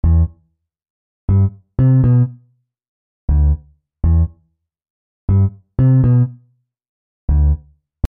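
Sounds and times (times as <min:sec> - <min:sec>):
bassline: 0:00.0 - 0:00.5, 0:01.3 - 0:02.4, 0:03.3 - 0:04.4, 0:05.3 - 0:06.5, 0:07.3 - 0:08.0.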